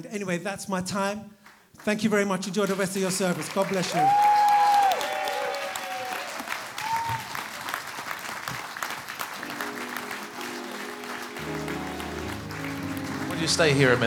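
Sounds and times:
speech: 0.0s - 4.4s, 13.5s - 14.0s
audience applauding: 2.6s - 14.0s.

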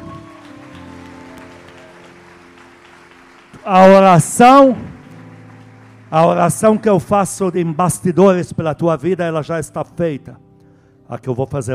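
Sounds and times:
audience applause: 0.0s - 8.1s
speech: 3.6s - 4.9s, 6.1s - 10.5s, 11.1s - 11.7s.

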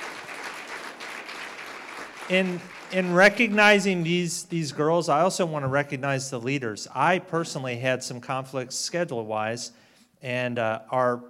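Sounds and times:
crowd applauding: 0.0s - 4.8s
speech: 2.3s - 11.2s.

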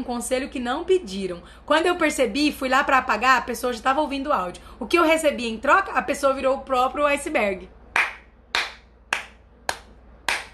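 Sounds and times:
speech: 0.0s - 7.8s
hand clapping: 8.0s - 10.5s.

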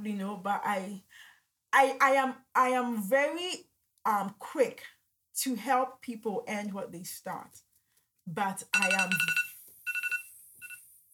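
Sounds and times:
speech: 0.0s - 7.7s, 8.3s - 9.4s
phone alarm ringing: 8.7s - 10.9s.

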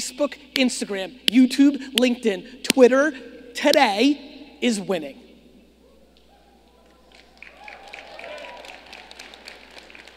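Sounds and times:
speech: 0.1s - 5.2s
weak audience clapping: 6.7s - 10.1s.

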